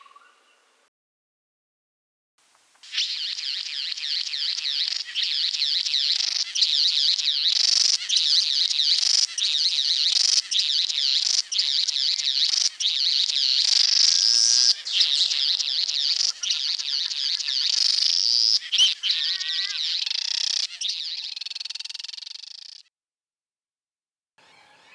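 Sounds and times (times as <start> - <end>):
satin bowerbird chattering: 2.9 - 22.9.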